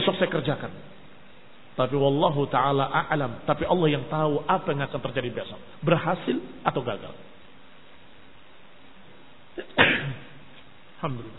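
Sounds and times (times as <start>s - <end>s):
speech: 0.2s - 1.0s, 1.8s - 7.3s, 11.0s - 11.3s
sneeze: 9.6s - 10.4s.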